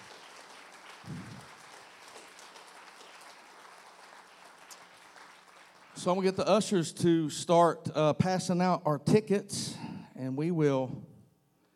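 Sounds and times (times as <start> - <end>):
audience hand clapping applause: 0.0 - 6.7
speech: 6.0 - 11.1.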